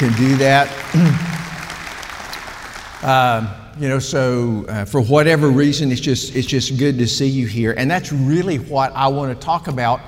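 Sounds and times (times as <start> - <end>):
speech: 0.0 - 1.3, 3.0 - 10.0
man speaking loudly: 0.0 - 1.4, 3.0 - 10.0
crowd clapping: 0.0 - 3.5.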